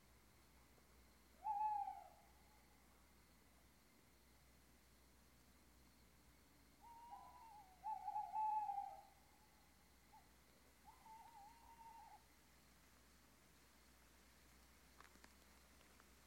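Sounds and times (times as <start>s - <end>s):
owl hoot: 1.4s - 2.6s, 6.8s - 12.3s.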